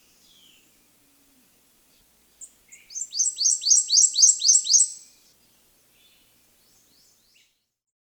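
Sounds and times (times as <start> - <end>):
Prothonotary Warbler singing at Magee Marsh: 0.0 - 1.0, 1.9 - 7.5.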